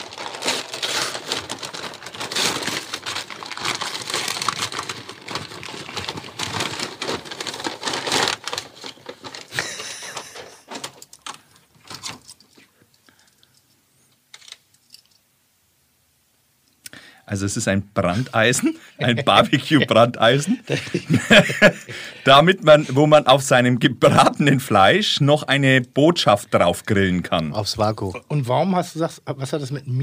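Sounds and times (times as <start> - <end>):
wrapping paper crinkling and tearing as a gift is unwrapped: 0.0 - 12.5
laughter: 9.5 - 10.8, 18.1 - 22.2
speech: 17.3 - 30.0.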